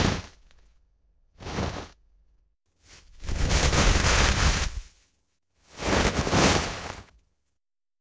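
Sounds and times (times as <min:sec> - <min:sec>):
snow collapsing and falling: 0:01.4 - 0:02.0, 0:03.2 - 0:04.9, 0:05.8 - 0:07.1.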